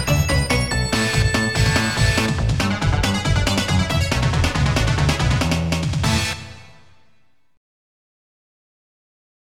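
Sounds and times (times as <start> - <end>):
bonus stage game music: 0.0 - 7.2.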